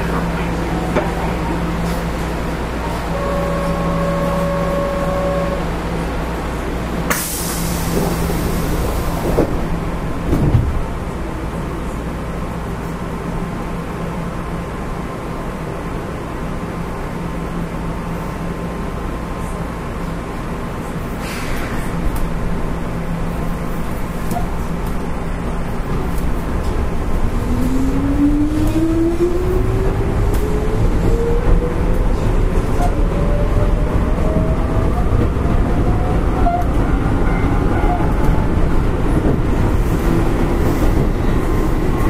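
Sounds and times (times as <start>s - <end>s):
Keihan Electric Railway 5000 series semi express train running: 0.0s - 42.0s
short tone: 3.1s - 5.6s.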